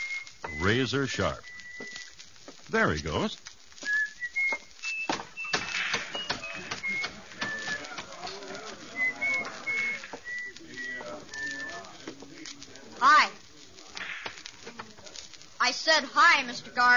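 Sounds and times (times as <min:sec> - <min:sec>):
man whistling while walking: 0:00.0 - 0:02.1, 0:03.8 - 0:11.9
speech: 0:00.7 - 0:02.0, 0:02.7 - 0:03.5, 0:16.0 - 0:16.9.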